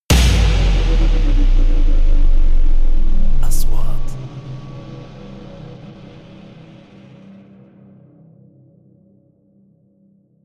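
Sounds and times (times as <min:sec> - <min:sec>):
3D trailer sound effects: 0:00.1 - 0:07.1.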